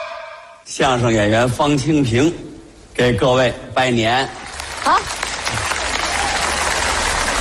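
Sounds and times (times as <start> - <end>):
speech: 0.8 - 5.2
audience applause for a crosstalk comedian: 4.4 - 7.3.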